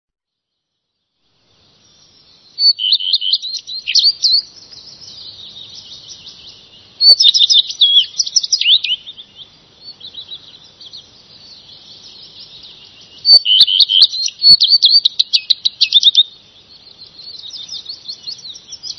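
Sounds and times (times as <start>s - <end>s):
Redstart twittering song: 0.5s - 18.9s.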